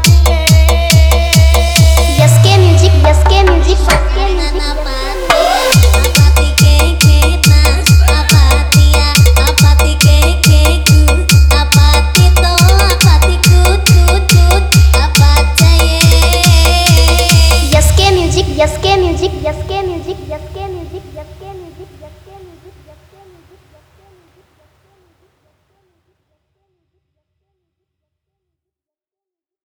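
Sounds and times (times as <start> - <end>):
EDM remix: 0.0 - 23.7.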